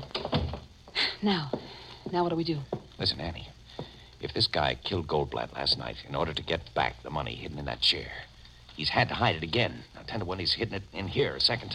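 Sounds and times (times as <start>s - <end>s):
door closing: 0.0s - 0.7s
speech: 1.2s - 3.6s, 4.2s - 11.7s.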